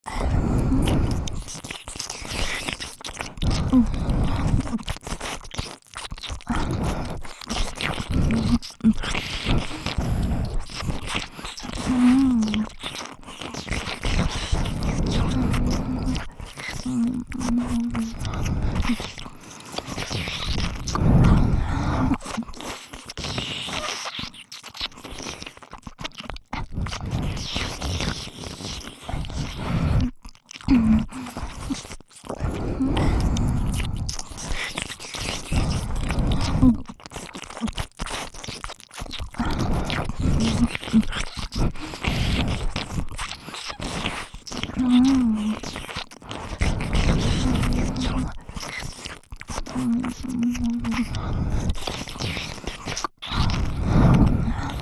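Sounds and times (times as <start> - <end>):
licking sounds on both ears: 0.0 - 54.8.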